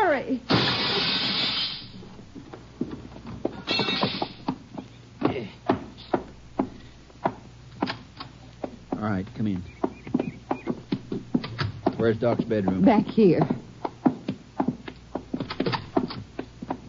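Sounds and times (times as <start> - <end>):
window glass broken with a gun: 0.5 - 1.9, 3.7 - 4.4
footsteps: 0.6 - 16.8
speech: 9.2 - 9.8, 12.0 - 13.6.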